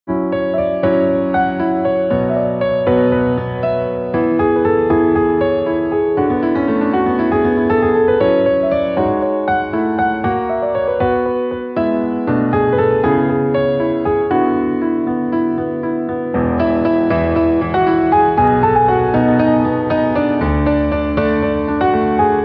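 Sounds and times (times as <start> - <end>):
instrumental piano ringtone: 0.1 - 22.4.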